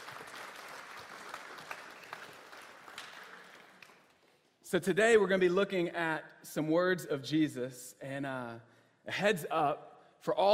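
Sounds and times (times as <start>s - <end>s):
audience applause: 0.0s - 4.2s
speech: 4.7s - 10.5s.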